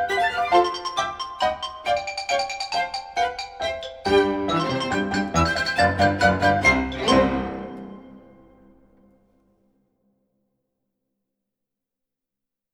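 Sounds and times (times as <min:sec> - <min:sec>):
bourree dance music: 0:00.2 - 0:08.2.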